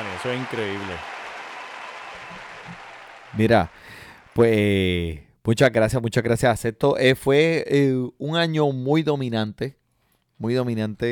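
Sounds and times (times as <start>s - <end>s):
applause: 0.0s - 4.7s
speech: 0.2s - 1.1s, 3.4s - 9.8s, 10.4s - 11.1s.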